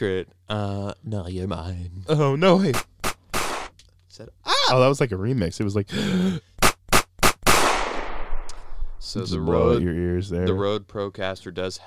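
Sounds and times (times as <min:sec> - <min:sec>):
speech: 0:00.0 - 0:02.9, 0:04.2 - 0:06.6, 0:09.0 - 0:11.8
gunshot sound effects: 0:02.7 - 0:03.7, 0:06.6 - 0:08.5.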